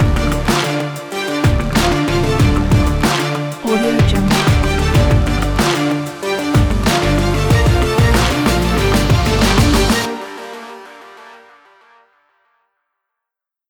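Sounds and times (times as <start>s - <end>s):
dramatic sports music: 0.0s - 10.1s.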